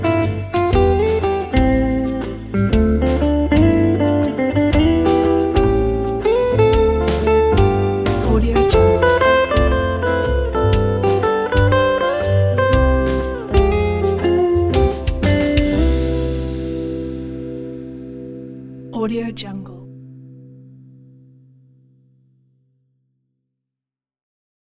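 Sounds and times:
happy cafe jazz guitar combo: 0.0 - 19.0.

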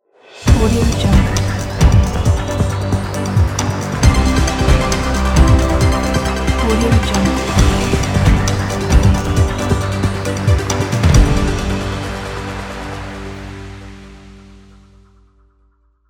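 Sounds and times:
TV news logo jingle: 0.5 - 12.4.

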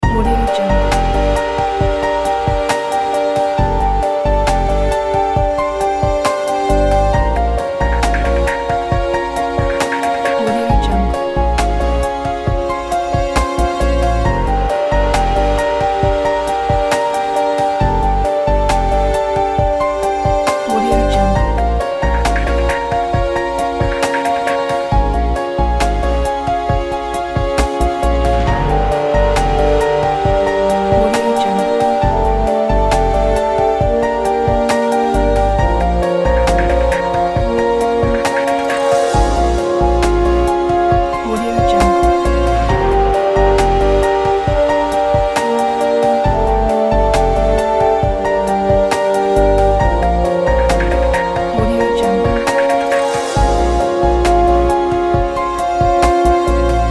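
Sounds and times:
music loop: 0.0 - 56.9.

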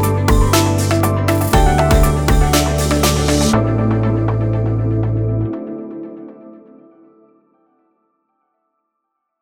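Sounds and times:
corporate technology atmosphere: 0.0 - 6.0.

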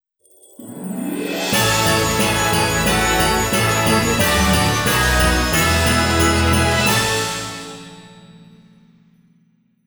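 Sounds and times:
Christmas orchestral logo jingle: 0.9 - 8.5.

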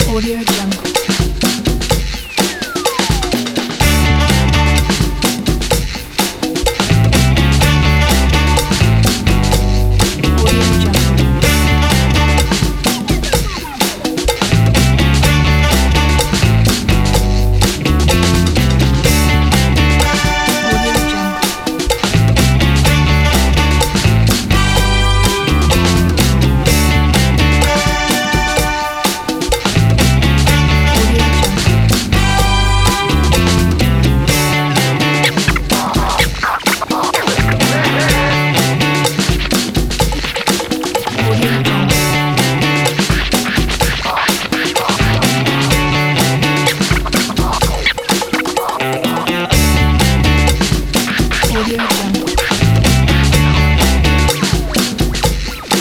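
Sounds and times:
vintage latin funky groove: 0.0 - 55.7.

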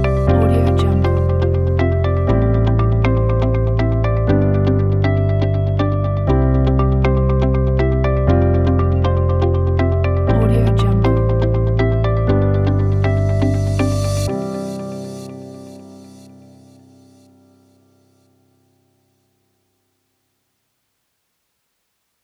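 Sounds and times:
corporate background music for education: 0.0 - 17.2.

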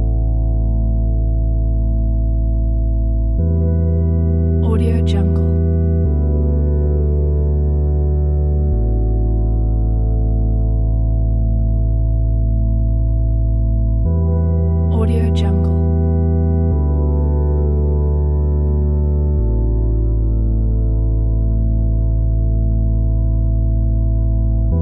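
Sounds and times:
ambient space soundscape: 0.0 - 24.8.

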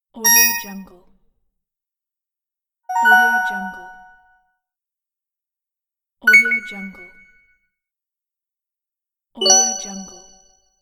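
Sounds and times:
advertising ding sounds: 0.3 - 0.9, 2.9 - 4.1, 6.3 - 7.4.

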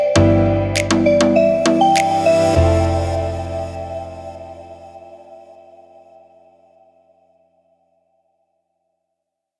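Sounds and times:
summer romantic pop music: 0.0 - 6.0.

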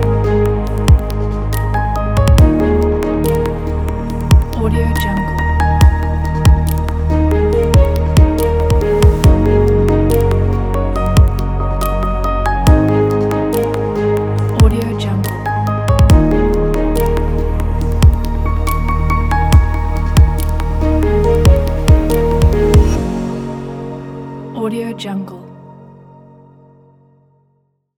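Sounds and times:
abstract noise piano: 0.0 - 26.2.

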